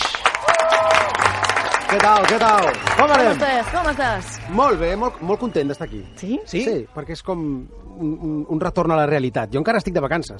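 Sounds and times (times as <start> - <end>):
loud audience applause: 0.0 - 6.6
speech: 1.9 - 10.3.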